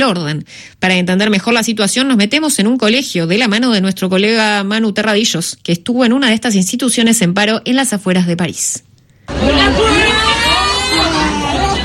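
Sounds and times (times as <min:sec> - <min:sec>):
speech: 0:00.0 - 0:10.2
students shouting and chanting at protest: 0:09.3 - 0:11.8.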